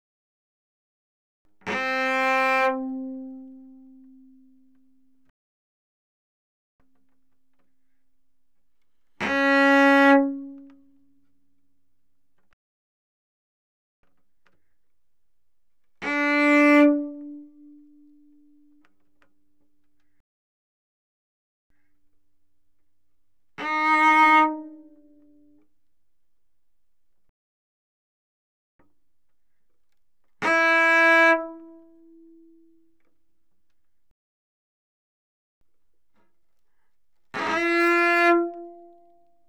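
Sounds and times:
cello bowed fortissimo on the D string: 1.7 - 4.9, 9.2 - 11.0, 16.0 - 18.9, 23.5 - 25.6, 30.4 - 32.8, 37.3 - 39.2.

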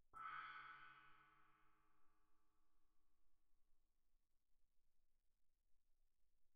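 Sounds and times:
soft mallet splash on suspended cymbals: 0.2 - 2.1.

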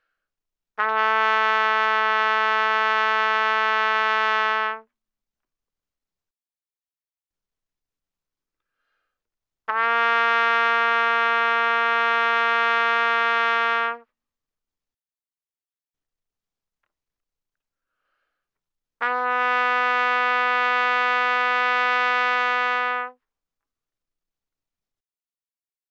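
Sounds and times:
trumpet notes without vibrato, fortissimo: 0.8 - 4.8, 9.7 - 14.0, 19.0 - 23.2.

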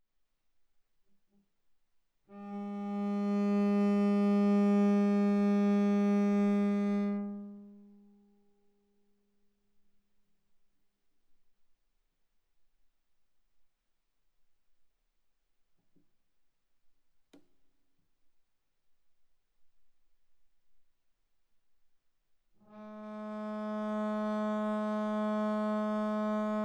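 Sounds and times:
viola bowed arco on the A string: 2.3 - 7.9, 22.7 - 26.6.

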